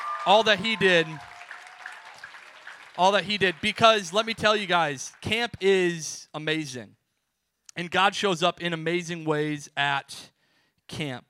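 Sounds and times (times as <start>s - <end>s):
audience applause: 0.0s - 5.3s
speech: 0.2s - 1.3s, 3.0s - 7.0s, 7.8s - 10.3s, 10.9s - 11.2s.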